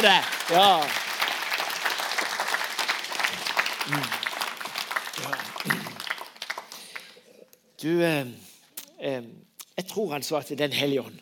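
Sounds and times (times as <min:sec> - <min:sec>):
speech: 0:00.0 - 0:01.0, 0:03.9 - 0:04.2, 0:05.2 - 0:05.9, 0:07.8 - 0:11.1
audience applause: 0:00.0 - 0:07.2.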